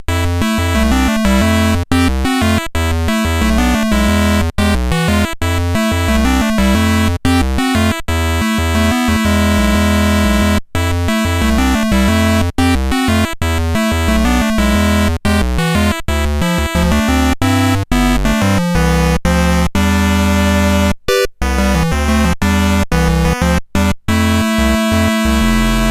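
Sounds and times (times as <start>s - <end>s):
SID CSG8580R5 chip music: 0.0s - 25.8s.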